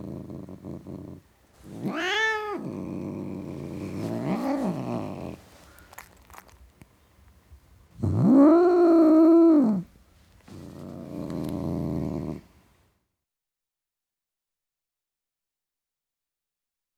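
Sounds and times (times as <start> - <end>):
male domestic tom cat growling: 0.0 - 6.6, 8.0 - 9.9, 10.5 - 12.5.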